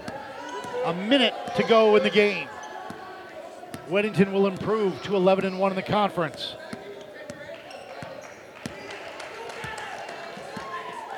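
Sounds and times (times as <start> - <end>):
basketball dribbled on court during a college game: 0.0 - 1.8, 2.8 - 5.6, 6.3 - 10.8
play-by-play commentary: 0.7 - 2.5, 3.9 - 6.6
speech: 0.8 - 2.6, 3.9 - 6.6.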